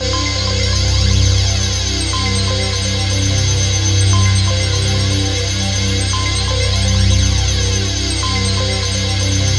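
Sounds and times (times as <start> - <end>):
ethereal atmospheric soundtrack: 0.0 - 9.5.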